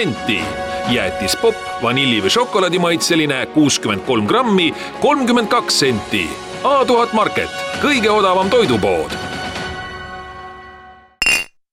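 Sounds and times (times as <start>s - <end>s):
speech: 0.0s - 9.3s
empty glass jar clinking: 11.2s - 11.6s.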